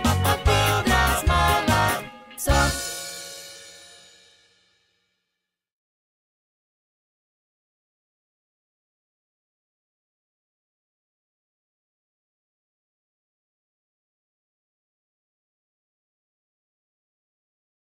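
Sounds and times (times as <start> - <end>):
bells ringing: 0.2 - 4.1.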